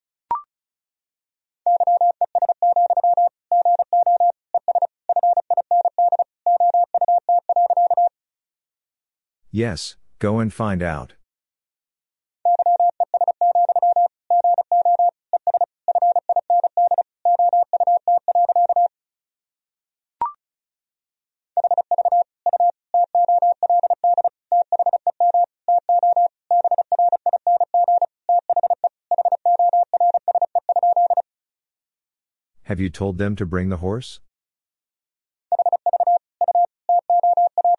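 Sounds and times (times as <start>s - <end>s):
Morse code beeps sent at 35 words per minute: 1.7s - 8.1s, 12.5s - 18.9s, 21.6s - 31.2s, 35.5s - 37.7s
speech: 9.5s - 11.2s, 32.7s - 34.2s.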